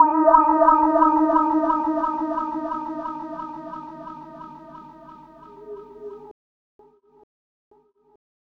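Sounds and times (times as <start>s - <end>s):
Rhodes electric piano effects: 0.0s - 6.3s.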